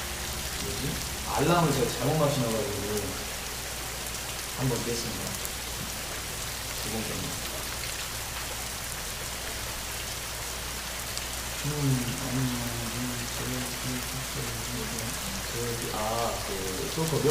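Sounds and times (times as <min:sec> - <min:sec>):
rain falling: 0:00.0 - 0:17.2
low voice murmuring: 0:00.6 - 0:03.2, 0:11.6 - 0:17.2
speech: 0:01.4 - 0:03.3, 0:04.6 - 0:05.5, 0:06.8 - 0:07.5, 0:11.6 - 0:17.2.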